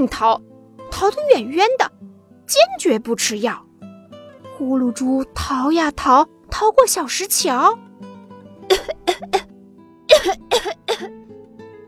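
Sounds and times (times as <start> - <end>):
speech: 0.0 - 1.9, 2.5 - 3.7, 4.6 - 7.9, 8.7 - 9.4
harsh coughing: 8.7 - 9.5, 10.1 - 11.1.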